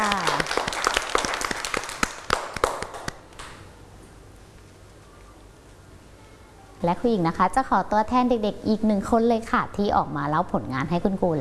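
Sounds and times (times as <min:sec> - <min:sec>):
children clapping: 0:00.0 - 0:03.6
speech: 0:06.8 - 0:11.3.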